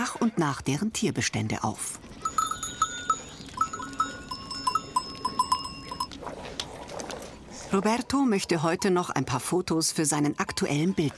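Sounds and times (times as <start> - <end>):
speech: 0.0 - 2.4, 7.7 - 11.1
goat herd bells clanking: 2.2 - 6.2.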